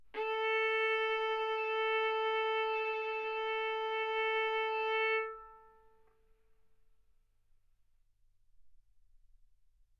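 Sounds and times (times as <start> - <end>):
violin bowed arco notes: 0.1 - 6.1.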